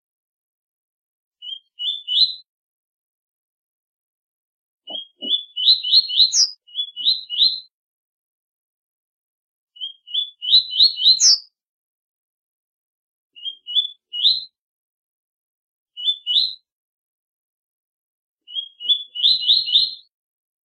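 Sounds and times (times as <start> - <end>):
double-collared seedeater singing rising whistled phrases: 1.4 - 2.5, 4.9 - 7.7, 9.8 - 11.5, 13.4 - 14.5, 16.0 - 16.6, 18.5 - 20.1.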